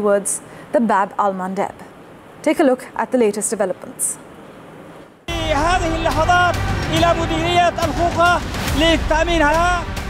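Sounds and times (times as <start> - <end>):
speech: 0.0 - 4.3, 5.5 - 9.9
crowd chanting and shouting: 5.3 - 10.0.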